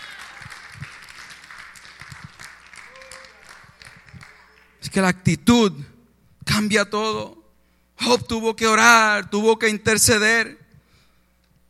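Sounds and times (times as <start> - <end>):
audience applause: 0.0 - 4.8
speech: 5.0 - 5.9, 6.6 - 7.4, 8.0 - 10.6.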